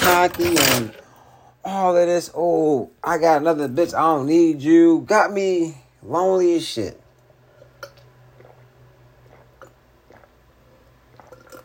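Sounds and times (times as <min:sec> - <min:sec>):
low steady hum: 0:00.0 - 0:11.6
speech: 0:00.1 - 0:01.0, 0:01.6 - 0:07.0
person drinking water: 0:07.3 - 0:11.6.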